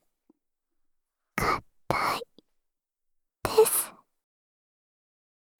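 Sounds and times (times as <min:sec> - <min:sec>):
person's voice: 0:01.4 - 0:02.3, 0:03.5 - 0:03.9.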